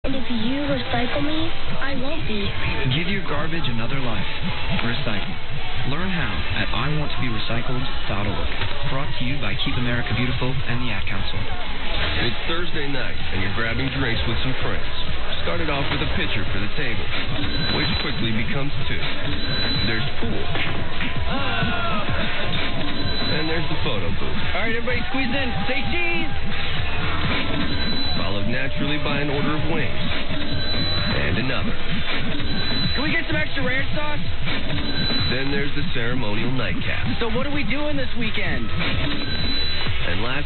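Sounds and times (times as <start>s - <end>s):
sung radio station ID: 0.0s - 40.4s.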